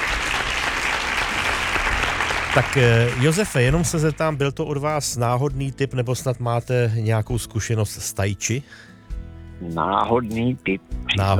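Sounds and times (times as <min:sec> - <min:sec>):
crowd applause: 0:00.0 - 0:04.2
speech: 0:02.6 - 0:08.9, 0:09.6 - 0:11.3.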